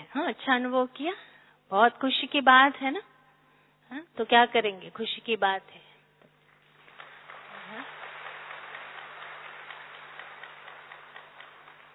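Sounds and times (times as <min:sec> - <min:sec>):
speech: 0:00.1 - 0:03.1, 0:03.9 - 0:05.8
crowd clapping: 0:06.4 - 0:11.9.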